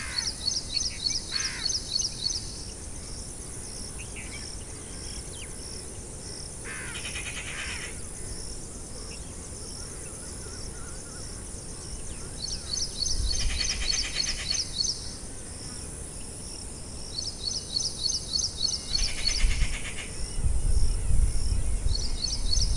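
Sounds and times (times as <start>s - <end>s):
bugs at night in a forest: 0.0s - 22.7s
crickets chirping at night in a forest: 0.0s - 22.7s.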